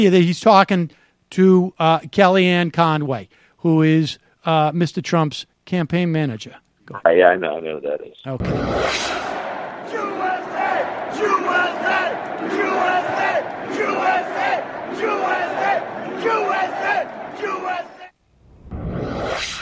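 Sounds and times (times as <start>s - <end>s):
speech: 0.0s - 9.3s
crowd chanting: 8.5s - 18.1s.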